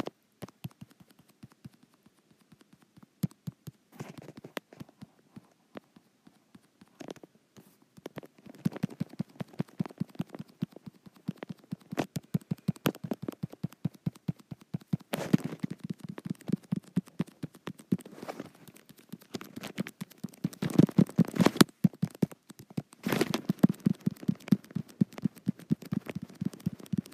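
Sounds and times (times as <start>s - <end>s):
fingers tapping and brushing a touch screen: 0.0s - 27.1s.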